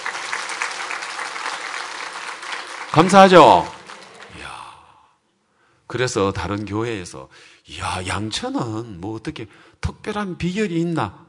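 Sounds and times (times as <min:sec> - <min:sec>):
audience applause: 0:00.0 - 0:04.8
speech: 0:02.9 - 0:03.8, 0:05.9 - 0:11.2.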